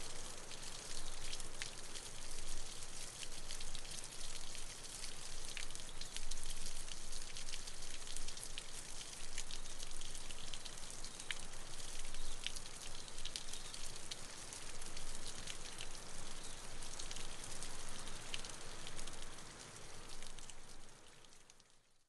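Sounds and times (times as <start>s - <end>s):
stream in the Manawatu Gorge, New Zealand: 0.0s - 21.4s.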